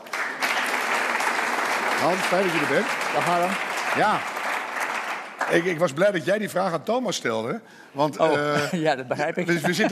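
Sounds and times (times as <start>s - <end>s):
audience applause: 0.0s - 5.9s
speech: 2.0s - 4.3s, 5.4s - 9.8s
laughter: 8.4s - 9.8s.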